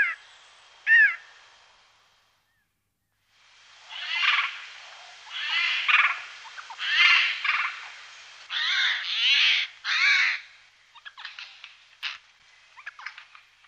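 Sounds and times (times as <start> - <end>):
Eurasian jay whistles, clicks and chattering: 0.0 - 0.2, 0.8 - 1.4, 3.9 - 13.3.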